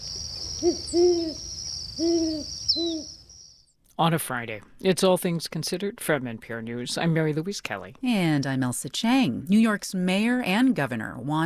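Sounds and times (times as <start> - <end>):
Great horned owl hooting: 0.0 - 3.4
speech: 0.6 - 1.4, 2.0 - 3.1, 4.0 - 11.4.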